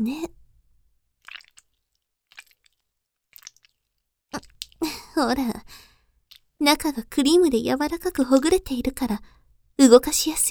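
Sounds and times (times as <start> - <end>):
speech: 0.0 - 0.4, 5.2 - 5.8, 6.6 - 10.4
wet squelching sound effect: 1.2 - 4.8, 6.2 - 6.6.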